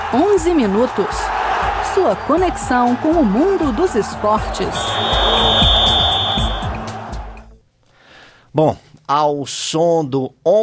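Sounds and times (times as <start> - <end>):
speech: 0.1 - 5.9, 8.6 - 10.6
referee's whistle blast: 4.7 - 6.8.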